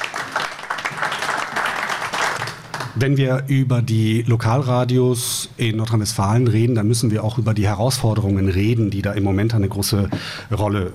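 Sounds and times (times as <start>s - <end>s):
audience applause: 0.0s - 3.0s
speech: 3.0s - 10.9s.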